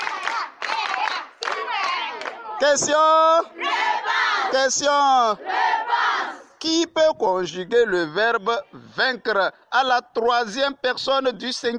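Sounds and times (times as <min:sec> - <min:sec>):
class of pupils clapping: 0:00.0 - 0:02.5
pupils chanting: 0:00.0 - 0:02.6, 0:03.6 - 0:04.6, 0:05.4 - 0:06.5
speech: 0:02.6 - 0:05.8, 0:06.6 - 0:11.7.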